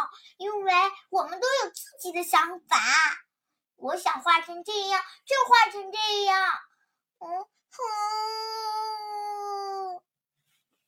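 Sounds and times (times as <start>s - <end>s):
speech: 0.2s - 9.6s
voice imitating a crying child: 7.2s - 10.1s.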